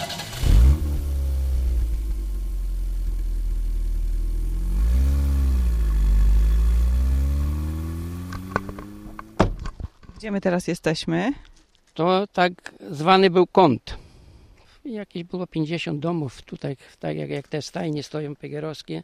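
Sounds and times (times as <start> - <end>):
car engine starting and revving: 0.0 - 9.6
speech: 10.2 - 14.0, 14.8 - 19.0.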